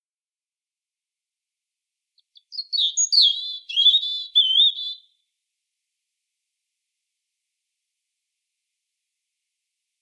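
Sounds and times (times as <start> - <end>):
European robin song: 2.2 - 5.2.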